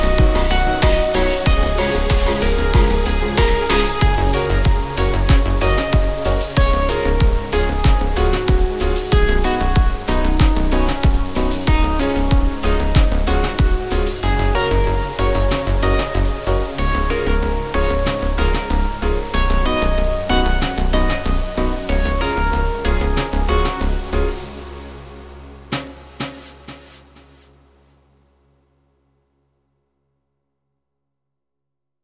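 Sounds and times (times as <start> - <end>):
autumn rain falling: 0.0 - 24.6.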